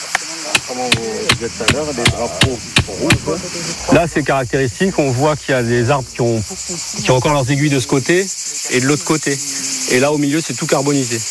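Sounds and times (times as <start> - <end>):
hammer pounding a stake into the ground: 0.6 - 3.4
speech: 0.7 - 11.3.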